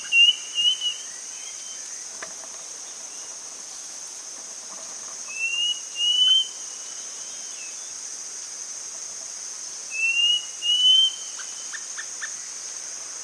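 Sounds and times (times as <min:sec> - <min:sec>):
bird giving clear whistled notes: 0:00.0 - 0:01.8, 0:05.3 - 0:07.9, 0:09.9 - 0:11.8.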